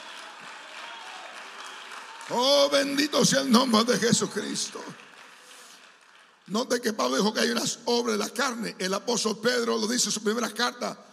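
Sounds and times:
audience applauding: 0.0s - 7.3s
speech: 2.3s - 5.1s, 6.5s - 11.1s.

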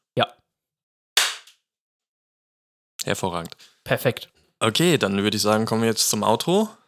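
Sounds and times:
speech: 0.2s - 0.4s, 3.1s - 6.8s
single hand clap: 1.2s - 1.6s.

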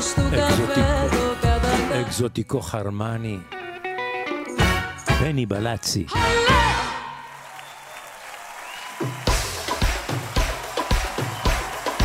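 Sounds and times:
concert music: 0.0s - 7.6s, 8.8s - 12.0s
speech: 2.0s - 3.6s, 5.2s - 6.9s
concert audience applause: 7.2s - 12.0s.

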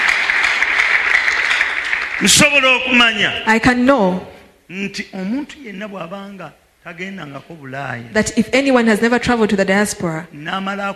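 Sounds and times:
crowd clapping: 0.0s - 3.3s
speech: 2.2s - 10.9s.

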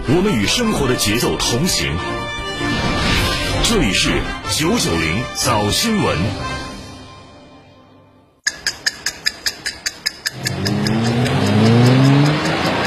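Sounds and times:
speech: 0.1s - 2.7s, 3.6s - 6.5s
Malibu XL car engine roaring accelerating from zero to 100 km/h: 10.3s - 12.8s.

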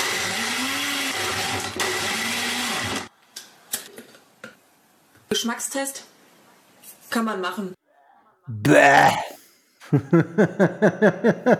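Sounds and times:
blender whirring churning a smoothie with ice: 0.0s - 3.0s
speech: 5.3s - 6.1s, 7.1s - 7.8s, 8.5s - 9.3s, 9.9s - 11.5s
laughter: 9.8s - 11.5s.

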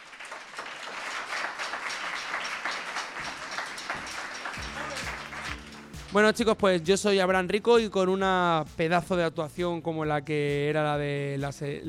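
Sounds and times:
audience applause: 0.0s - 6.3s
speech: 6.1s - 11.8s.

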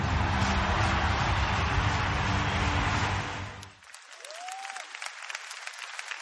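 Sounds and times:
big stadium crowd cheering in a commercial: 0.0s - 6.1s
crackling applause: 0.0s - 6.1s.

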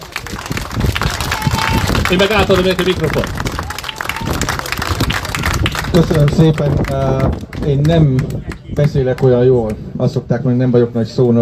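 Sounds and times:
audience applause: 0.0s - 9.3s
speech: 2.1s - 3.6s, 6.0s - 11.4s.

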